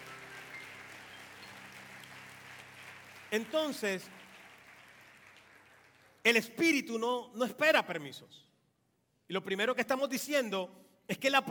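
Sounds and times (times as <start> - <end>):
audience clapping: 0.0 - 6.5
speech: 3.3 - 4.2, 6.3 - 8.5, 9.3 - 11.5.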